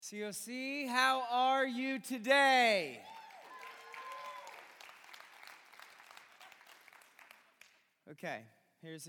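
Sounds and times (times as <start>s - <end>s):
speech: 0.0s - 3.2s, 8.1s - 9.0s
audience applause: 3.0s - 7.8s.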